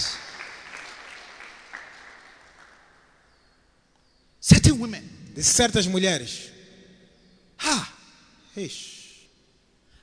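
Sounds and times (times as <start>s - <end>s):
crowd applause: 0.0s - 3.1s
speech: 4.5s - 6.5s, 8.6s - 9.0s.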